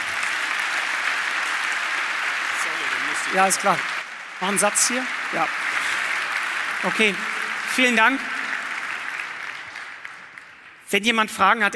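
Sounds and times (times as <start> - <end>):
applause: 0.0 - 11.7
speech: 3.3 - 5.8, 6.8 - 8.3, 10.9 - 11.7.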